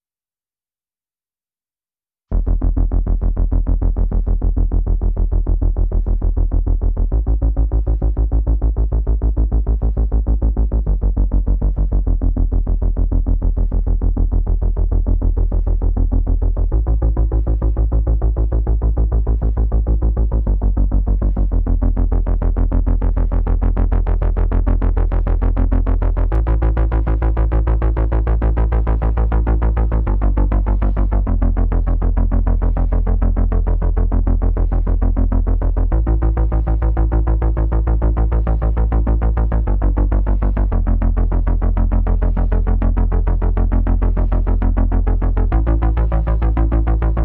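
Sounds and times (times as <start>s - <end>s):
bass: 2.2s - 47.2s.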